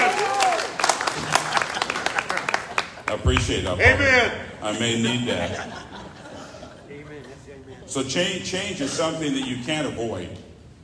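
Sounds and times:
audience applause: 0:00.0 - 0:03.6
laughter: 0:01.0 - 0:03.4, 0:04.6 - 0:08.0
speech: 0:03.1 - 0:06.0, 0:07.2 - 0:10.4.

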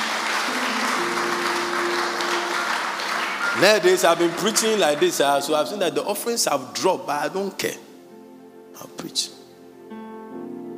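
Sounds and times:
audience clapping: 0:00.0 - 0:06.1
speech: 0:03.6 - 0:07.8, 0:08.8 - 0:09.4.

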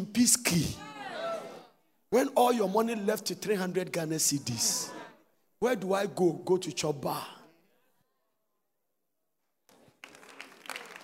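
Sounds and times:
speech: 0:00.2 - 0:00.9, 0:02.1 - 0:05.0, 0:05.6 - 0:07.4
audience clapping: 0:09.7 - 0:11.0.

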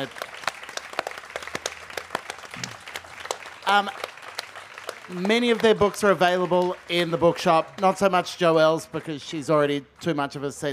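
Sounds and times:
speech: 0:00.0 - 0:00.3, 0:03.7 - 0:04.0, 0:05.1 - 0:10.7
audience applause: 0:00.0 - 0:08.2.

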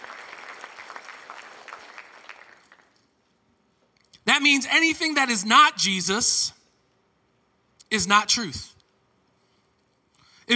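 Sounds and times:
audience applause: 0:00.0 - 0:03.0
speech: 0:04.4 - 0:06.6, 0:07.9 - 0:08.7.

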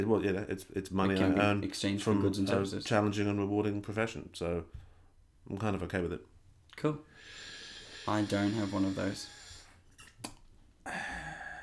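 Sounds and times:
speech: 0:00.0 - 0:04.8, 0:05.5 - 0:09.4
sucking air from the top of a thermos: 0:07.2 - 0:10.4.

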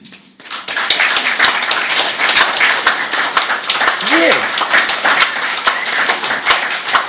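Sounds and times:
audience applause: 0:00.4 - 0:07.0
person cheering: 0:04.0 - 0:04.5.

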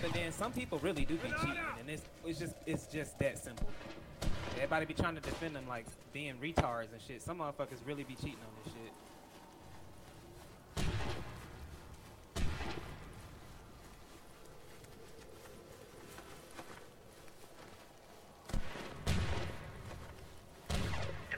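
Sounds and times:
speech: 0:00.0 - 0:09.1
video game gunshots: 0:03.6 - 0:05.9, 0:10.7 - 0:11.6, 0:12.3 - 0:13.2, 0:18.5 - 0:19.9, 0:20.6 - 0:21.3.

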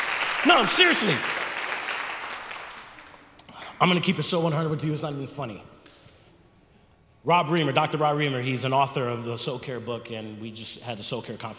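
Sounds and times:
audience clapping: 0:00.0 - 0:03.4
speech: 0:00.4 - 0:01.4, 0:03.8 - 0:05.7, 0:07.2 - 0:11.5.

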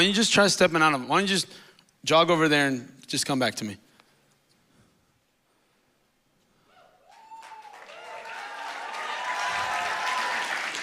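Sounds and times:
speech: 0:00.0 - 0:03.8
audience applause: 0:07.1 - 0:10.8.

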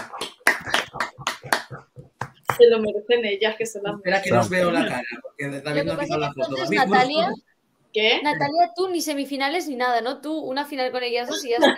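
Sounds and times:
hands clapping in applause: 0:00.0 - 0:02.7
speech: 0:02.6 - 0:11.7.

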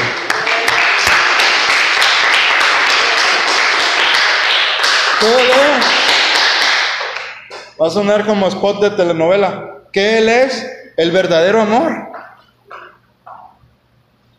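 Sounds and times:
audience applause: 0:00.0 - 0:07.6
speech: 0:07.8 - 0:12.1.

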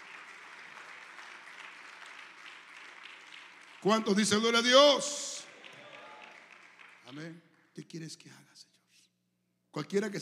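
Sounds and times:
audience applause: 0:00.0 - 0:07.3
speech: 0:03.8 - 0:05.3, 0:07.2 - 0:08.7, 0:09.8 - 0:10.2.

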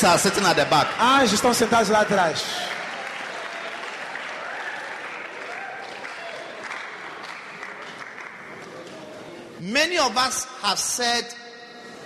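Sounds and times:
speech: 0:00.0 - 0:02.8, 0:09.6 - 0:11.4
audience applauding: 0:00.0 - 0:09.1.

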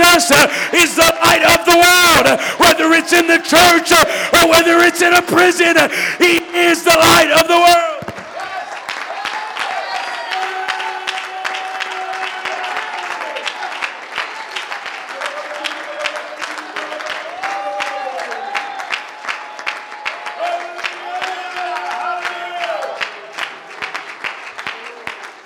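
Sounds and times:
crowd clapping: 0:00.0 - 0:25.4
speech: 0:00.2 - 0:08.2
crowd cheers and whoops: 0:08.0 - 0:23.5.

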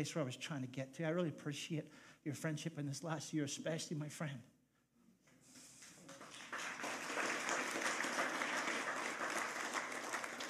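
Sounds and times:
speech: 0:00.0 - 0:04.5
audience clapping: 0:05.8 - 0:10.4.

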